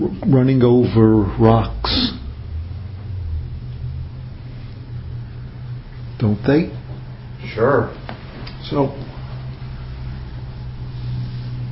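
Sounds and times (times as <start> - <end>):
speech: 0.0 - 2.0, 6.2 - 6.8, 7.4 - 9.1
passing car traffic outside a Zen meditation hall: 0.0 - 11.7.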